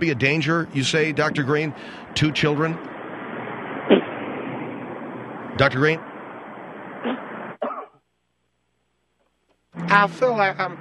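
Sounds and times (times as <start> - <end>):
speech: 0.0 - 3.0, 5.6 - 6.1, 9.8 - 10.7
coughing fit: 7.1 - 8.0.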